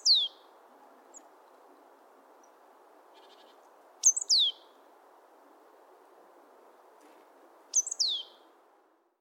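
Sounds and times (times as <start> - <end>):
great tit chirping calls: 0.0 - 0.5, 2.4 - 4.7, 7.7 - 8.4.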